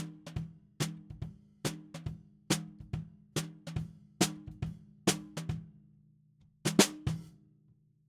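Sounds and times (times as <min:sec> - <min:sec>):
snare drum: 0:00.0 - 0:05.6, 0:06.7 - 0:07.3.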